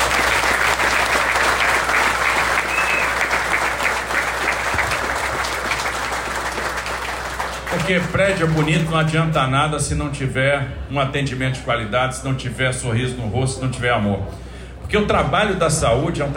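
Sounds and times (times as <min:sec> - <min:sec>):
audience applause: 0:00.0 - 0:09.2
speech: 0:07.9 - 0:16.3.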